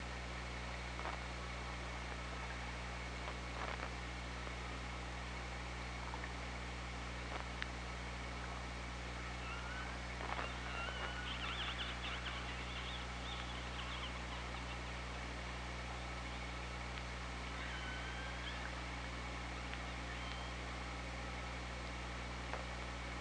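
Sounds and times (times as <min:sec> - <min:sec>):
constant underwater hiss and low hum: 0:00.1 - 0:23.2
orca calls: 0:09.4 - 0:14.6, 0:17.4 - 0:18.8.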